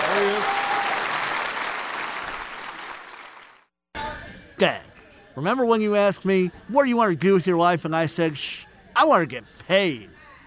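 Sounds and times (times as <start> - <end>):
audience round of applause: 0.0 - 3.6
speech: 4.6 - 10.2.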